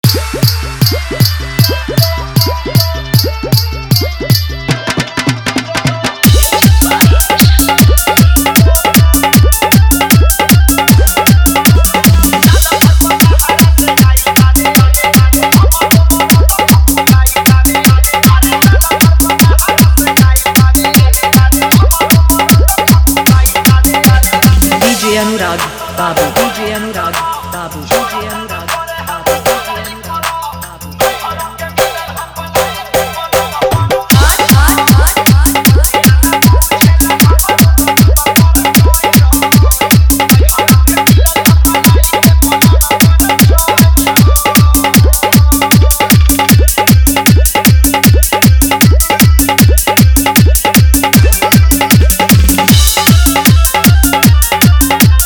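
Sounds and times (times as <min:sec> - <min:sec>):
dholki dance mix with bass: 0:00.0 - 0:55.2.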